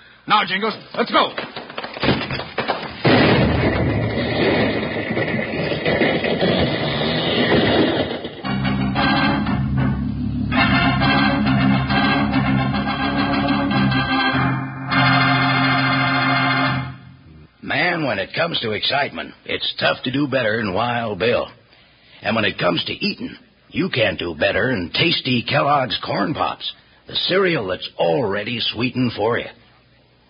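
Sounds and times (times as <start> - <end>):
speech: 0.3 - 1.6, 18.2 - 21.6, 22.2 - 29.6
burning fuse crackling: 0.8 - 8.7
explosion in a Wild Bill radio drama: 3.0 - 8.5
dramatic music: 8.5 - 17.2.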